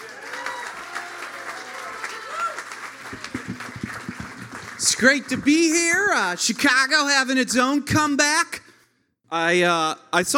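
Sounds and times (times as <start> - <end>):
audience applause: 0.0 - 6.6
speech: 5.0 - 8.6, 9.3 - 10.3.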